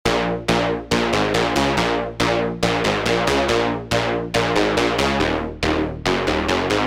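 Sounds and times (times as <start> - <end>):
lead melody: 0.1 - 6.8.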